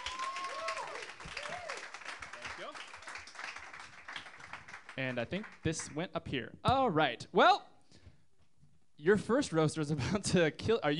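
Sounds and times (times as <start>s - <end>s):
scattered cheering voices: 0.0s - 3.8s
audience applause: 0.0s - 5.7s
speech: 5.0s - 7.7s, 9.0s - 10.9s.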